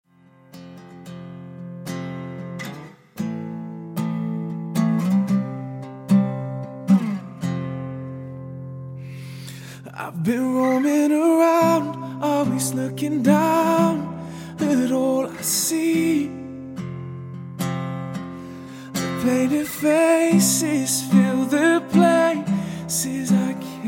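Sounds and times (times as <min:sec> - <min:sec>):
guitar: 0:00.1 - 0:23.8
vocalist singing: 0:09.8 - 0:16.8, 0:18.9 - 0:23.8.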